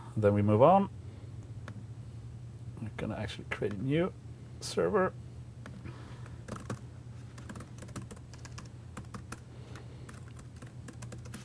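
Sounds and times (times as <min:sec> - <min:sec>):
speech: 0:00.2 - 0:01.0, 0:02.9 - 0:05.2
hard typing on computer keyboard: 0:06.4 - 0:06.8, 0:07.4 - 0:09.4, 0:10.0 - 0:11.4.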